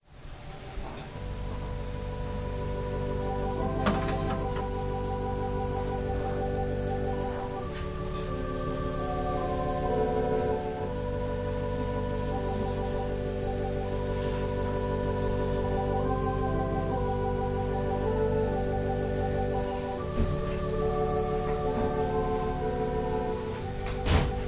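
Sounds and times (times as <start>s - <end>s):
organ prelude: 0.3s - 24.4s.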